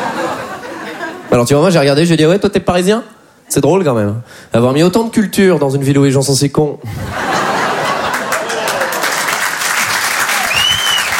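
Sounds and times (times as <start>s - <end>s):
laughter: 0.0s - 1.3s, 6.8s - 9.6s
speech: 1.3s - 7.5s
audience applause: 7.7s - 11.1s.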